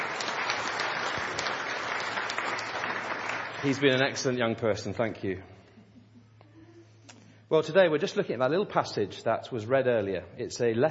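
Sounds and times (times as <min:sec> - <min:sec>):
audience round of applause: 0:00.0 - 0:04.3
speech: 0:03.6 - 0:05.6, 0:07.5 - 0:10.8.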